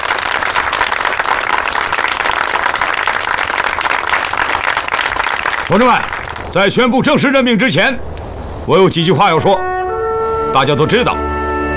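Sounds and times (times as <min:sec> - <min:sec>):
audience applause: 0:00.0 - 0:06.5
speech: 0:05.7 - 0:08.1, 0:08.7 - 0:09.7, 0:10.5 - 0:11.2.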